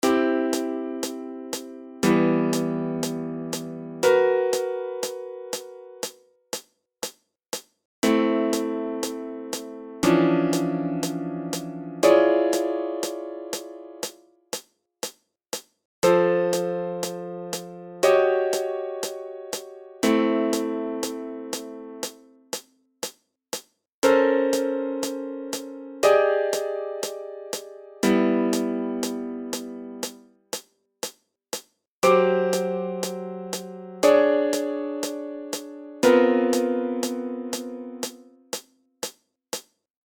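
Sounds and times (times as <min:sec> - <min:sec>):
piano: 0:00.0 - 0:06.2, 0:08.0 - 0:14.3, 0:16.0 - 0:22.5, 0:24.0 - 0:30.3, 0:32.0 - 0:38.6.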